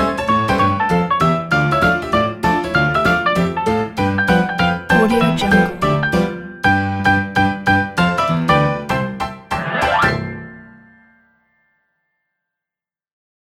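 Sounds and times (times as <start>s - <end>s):
funny vintage piano music: 0.0s - 11.1s.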